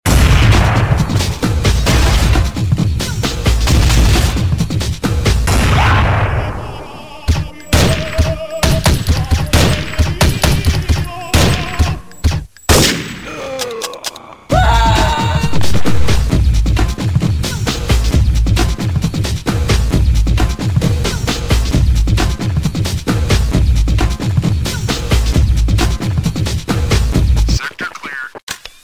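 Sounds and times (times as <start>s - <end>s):
war techno music: 0.1s - 12.5s, 14.5s - 27.6s.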